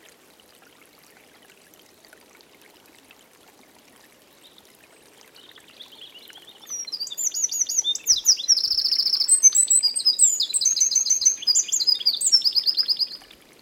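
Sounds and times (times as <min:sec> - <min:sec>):
Eurasian wren singing trills: 0:06.7 - 0:13.2.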